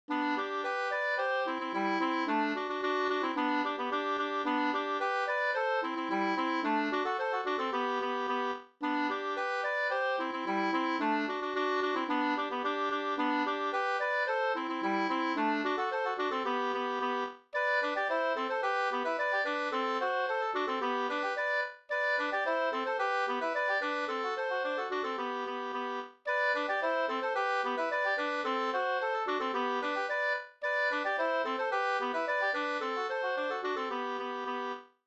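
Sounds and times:
polka music: 0:00.1 - 0:34.8.

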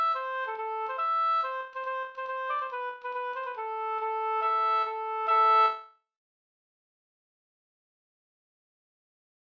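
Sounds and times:
waltz music: 0:00.0 - 0:05.8.

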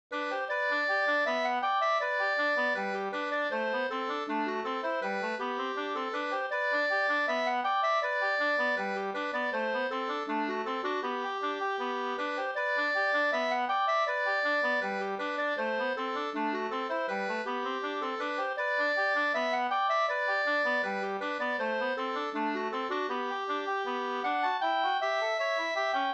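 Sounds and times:
folk walking tune: 0:00.2 - 0:26.1.

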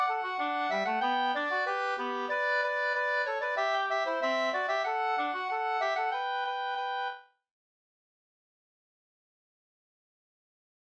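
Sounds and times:
polka music: 0:00.0 - 0:07.2.

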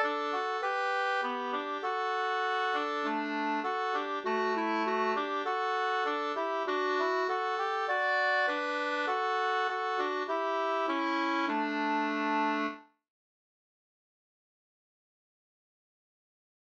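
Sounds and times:
folk song melody: 0:00.0 - 0:12.8.

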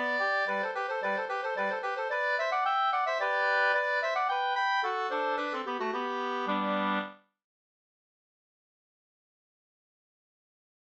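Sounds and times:
slangpolska folk dance tune: 0:00.0 - 0:07.2.

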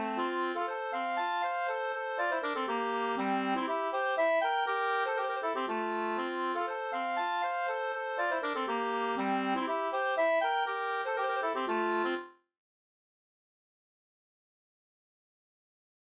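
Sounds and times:
polska dance tune: 0:00.0 - 0:12.2.

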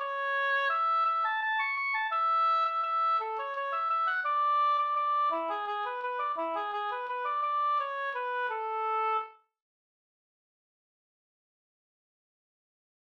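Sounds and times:
waltz in A major: 0:00.1 - 0:09.1.

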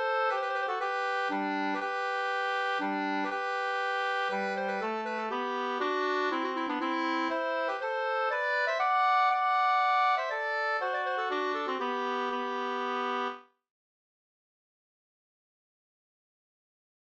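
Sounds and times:
polska folk dance tune: 0:00.0 - 0:13.4.

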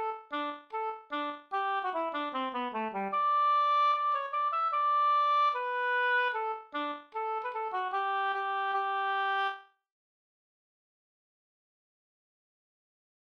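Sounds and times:
schottische folk dance tune in four-beat time: 0:00.0 - 0:09.6.

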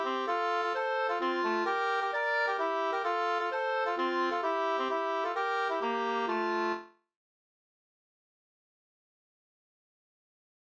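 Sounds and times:
two-part polska folk dance tune: 0:00.0 - 0:06.9.

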